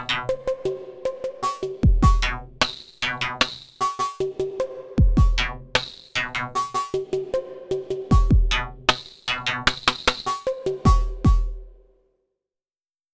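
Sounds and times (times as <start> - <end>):
Nord Drum 3P drum synth sound effects: 0.0 - 4.4, 5.0 - 7.2, 7.9 - 11.8.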